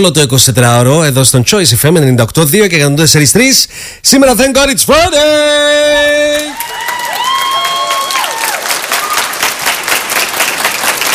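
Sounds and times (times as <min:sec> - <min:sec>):
speech: 0:00.0 - 0:06.9
applause sound effect: 0:06.3 - 0:11.1.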